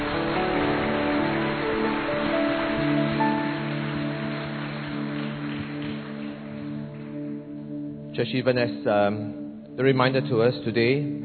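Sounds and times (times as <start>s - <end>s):
audience clapping hands: 0.0s - 7.5s
speech: 8.2s - 11.2s.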